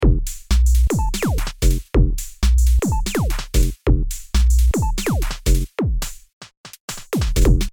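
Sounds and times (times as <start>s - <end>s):
music loop: 0.0s - 6.2s, 6.9s - 7.7s.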